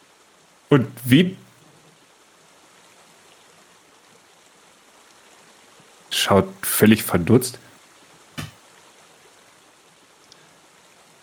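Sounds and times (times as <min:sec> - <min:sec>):
running water trickling: 0:00.0 - 0:11.2
speech: 0:00.7 - 0:01.4, 0:06.2 - 0:07.7.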